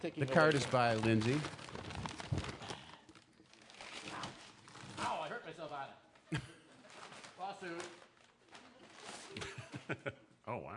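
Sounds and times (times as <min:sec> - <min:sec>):
speech: 0:00.0 - 0:01.7, 0:05.5 - 0:06.5, 0:07.4 - 0:08.1, 0:09.3 - 0:10.7
wrapping paper crinkling and tearing as a tightly taped gift is opened: 0:00.0 - 0:05.9, 0:06.8 - 0:09.4.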